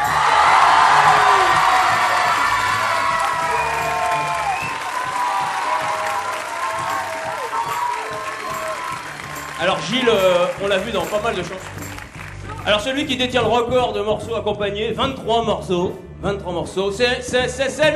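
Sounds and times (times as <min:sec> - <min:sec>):
audience cheering and whooping greeting a musician: 0:00.0 - 0:10.6
audience clapping: 0:00.1 - 0:12.9
speech: 0:09.9 - 0:11.8, 0:12.7 - 0:17.9.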